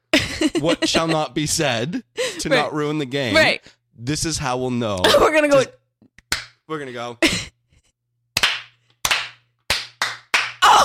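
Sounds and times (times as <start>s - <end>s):
laughter: 0.2s - 1.4s
speech: 0.4s - 5.8s, 6.7s - 7.5s
rhythmic hand clap: 6.2s - 6.7s, 8.3s - 10.7s.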